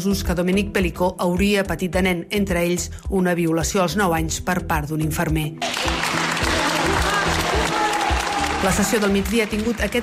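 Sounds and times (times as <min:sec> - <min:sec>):
speech: 0:00.0 - 0:05.9, 0:08.6 - 0:10.0
members of the public applauding as Gisèle Pelicot leaves the courtroom: 0:05.6 - 0:10.0.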